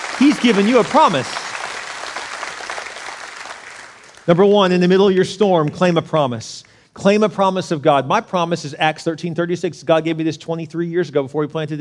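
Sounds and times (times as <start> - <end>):
audience clapping hands: 0.0 - 5.0
speech: 0.4 - 1.5, 4.3 - 11.8.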